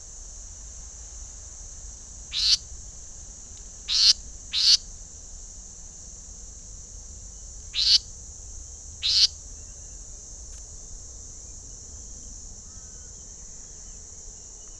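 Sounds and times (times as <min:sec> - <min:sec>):
Myiagra rubecula leaden flycatcher calling: 0:00.2 - 0:14.7.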